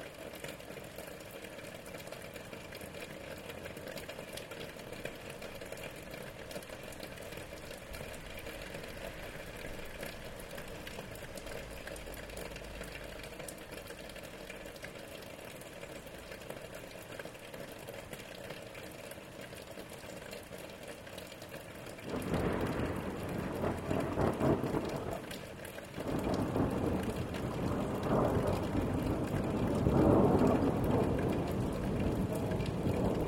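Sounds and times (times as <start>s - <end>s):
rain: 0.0s - 33.2s
thunder: 22.1s - 25.4s, 26.0s - 33.2s.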